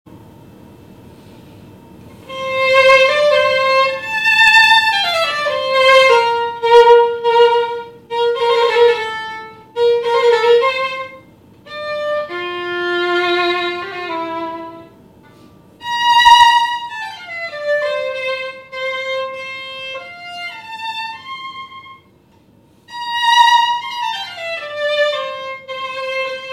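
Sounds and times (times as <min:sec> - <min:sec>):
violin: 0:02.1 - 0:15.0, 0:15.8 - 0:22.2, 0:22.9 - 0:26.5.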